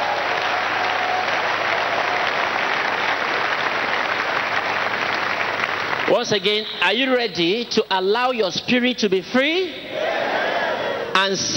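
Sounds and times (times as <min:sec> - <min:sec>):
audience clapping: 0:00.0 - 0:07.2
speech: 0:06.1 - 0:09.9, 0:11.2 - 0:11.5.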